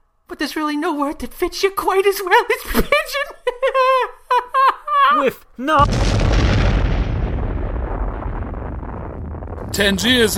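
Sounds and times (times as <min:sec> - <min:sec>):
speech: 0:00.3 - 0:04.2, 0:05.2 - 0:06.2, 0:09.8 - 0:10.3
bomb explosion: 0:05.8 - 0:10.3.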